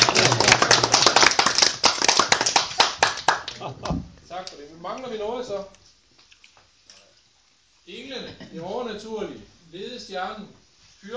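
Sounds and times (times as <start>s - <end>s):
small group clapping: 0.0s - 4.6s
speech: 4.5s - 5.8s, 7.9s - 11.1s.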